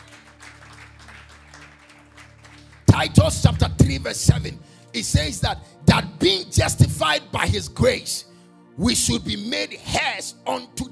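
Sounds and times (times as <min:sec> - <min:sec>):
congregation clapping hands during a church sermon: 0:00.0 - 0:04.9
speech: 0:03.0 - 0:10.9.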